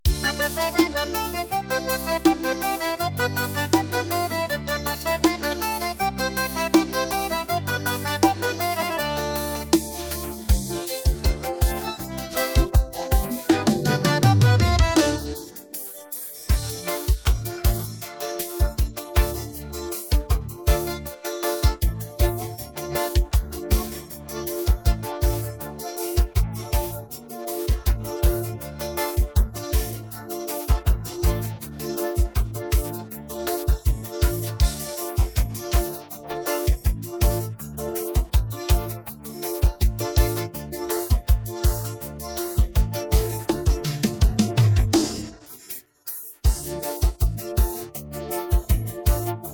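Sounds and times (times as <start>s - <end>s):
piseiro instrumental music: 0.0s - 49.5s.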